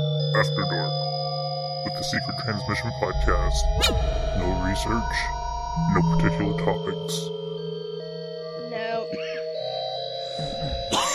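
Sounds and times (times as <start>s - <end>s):
humming musical drone: 0.0s - 11.1s
speech: 1.9s - 7.4s
person coughing from water down the wrong pipe: 10.4s - 11.1s.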